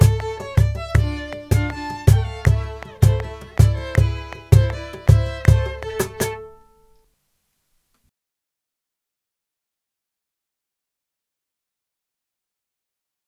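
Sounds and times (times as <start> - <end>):
cajon play-along at 160 beats per minute: 0.0 - 6.8.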